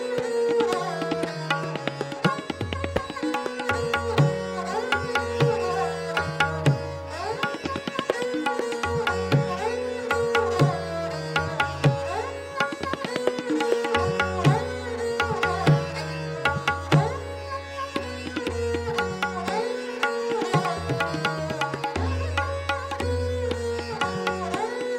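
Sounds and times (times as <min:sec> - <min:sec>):
tabla playing in Jap Taal: 0:00.0 - 0:24.9.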